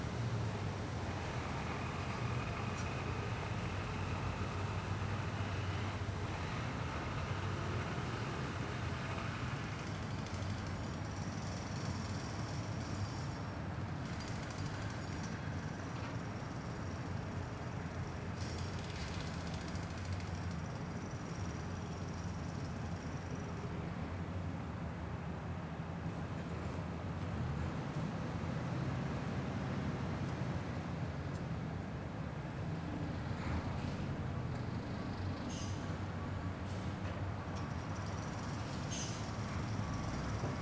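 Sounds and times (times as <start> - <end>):
construction soundscape: 0.1 - 40.6.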